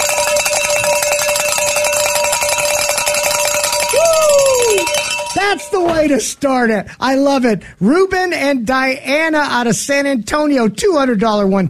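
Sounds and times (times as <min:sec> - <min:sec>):
bells ringing: 0:00.0 - 0:06.2
speech: 0:05.5 - 0:11.6.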